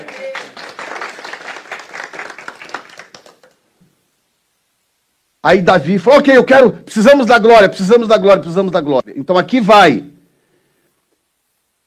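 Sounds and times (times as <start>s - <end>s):
audience applause: 0.0s - 3.6s
speech: 5.4s - 10.1s.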